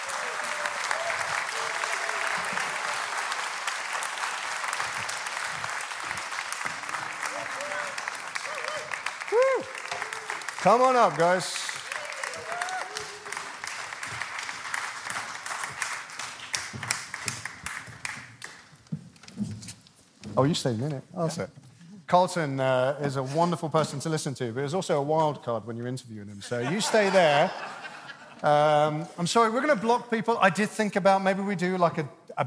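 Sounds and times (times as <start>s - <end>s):
huge round of applause: 0.0s - 18.7s
speech: 10.6s - 11.6s, 20.4s - 27.8s, 28.4s - 32.4s
laughter: 26.5s - 28.8s.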